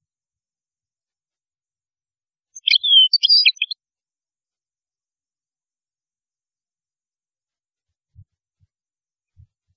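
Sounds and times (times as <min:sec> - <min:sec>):
European goldfinch song: 0:02.6 - 0:03.8.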